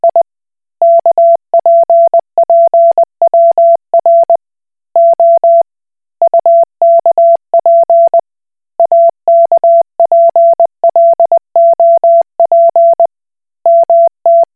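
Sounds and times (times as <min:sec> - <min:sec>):
Koch Morse code beeps: 0:00.0 - 0:00.2, 0:00.8 - 0:04.4, 0:05.0 - 0:05.6, 0:06.2 - 0:08.2, 0:08.8 - 0:13.1, 0:13.7 - 0:14.5.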